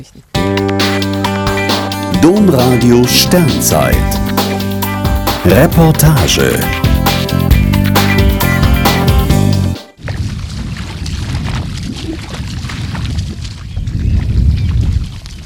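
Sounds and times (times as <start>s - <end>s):
speech: 0.0s - 1.4s, 2.2s - 4.3s, 5.4s - 7.7s
music: 0.4s - 10.0s
wind and water noise on Wadden Sea tidal flats: 9.9s - 15.4s.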